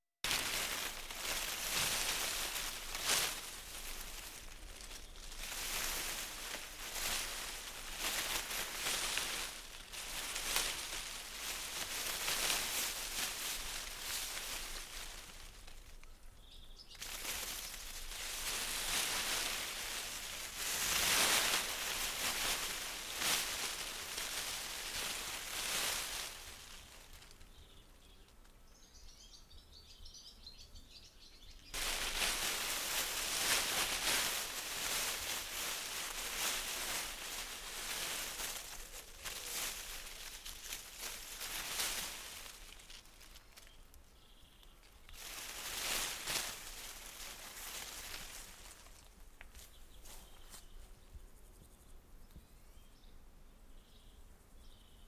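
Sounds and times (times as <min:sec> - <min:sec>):
foliage: 0:00.0 - 0:28.3, 0:31.7 - 0:50.8.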